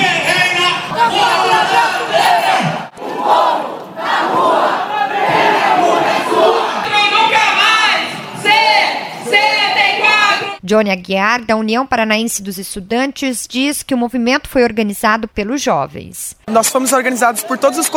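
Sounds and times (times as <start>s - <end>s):
protest crowd chanting slogans: 0.0s - 10.6s
speech: 10.7s - 17.9s.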